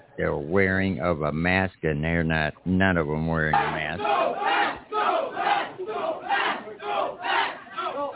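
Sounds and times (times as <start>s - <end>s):
speech: 0.2s - 4.4s
children shouting in a school hallway: 3.6s - 8.1s.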